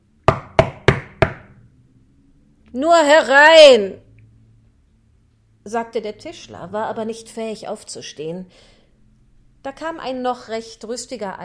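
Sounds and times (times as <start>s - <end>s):
knocking on a door: 0.3s - 1.5s
speech: 2.7s - 4.0s, 5.6s - 8.8s, 9.6s - 11.4s.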